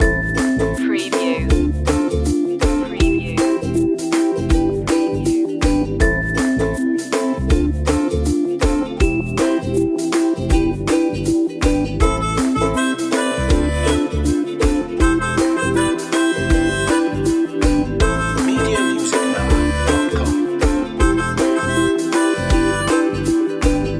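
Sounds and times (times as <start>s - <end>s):
ukulele loop: 0.0s - 23.9s.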